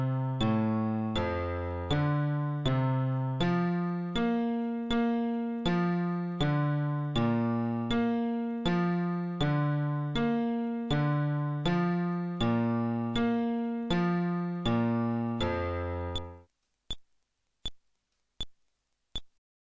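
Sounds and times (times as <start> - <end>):
fretless bass arpeggio: 0.0 - 16.4.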